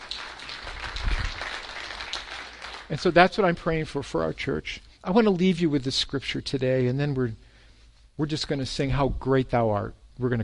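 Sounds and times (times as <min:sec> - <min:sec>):
audience clapping: 0:00.0 - 0:03.6
speech: 0:02.9 - 0:07.4, 0:08.2 - 0:10.4.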